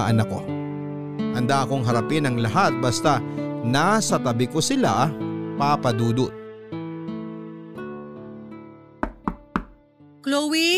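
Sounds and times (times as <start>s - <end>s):
speech: 0.0s - 0.6s, 1.4s - 6.4s, 10.2s - 10.7s
knocking on a door: 9.0s - 9.8s.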